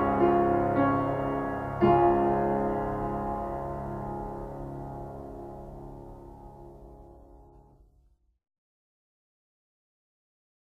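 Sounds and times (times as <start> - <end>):
piano prelude: 0.0 - 7.6.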